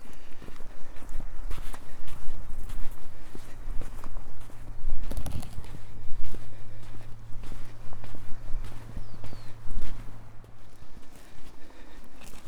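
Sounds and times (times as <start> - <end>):
footsteps on soft beach sand: 0.0 - 12.4
low steady drone: 5.9 - 12.0.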